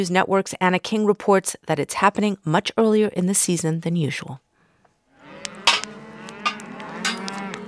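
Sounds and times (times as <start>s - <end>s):
speech: 0.0s - 4.4s
cattle mooing on a ranch: 5.1s - 7.6s
knocks and clatters: 5.7s - 7.6s.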